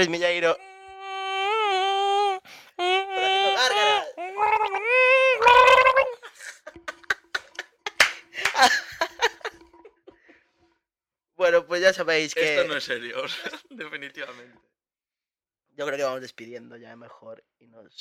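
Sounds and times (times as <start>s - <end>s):
speech: 0.0s - 0.7s, 11.8s - 14.7s, 15.8s - 17.9s
person gargling Coca-Cola: 0.7s - 6.9s
laughter: 3.4s - 10.3s, 12.4s - 14.4s
gulps and mouth smacks swallowing Coca-Cola: 5.4s - 7.6s.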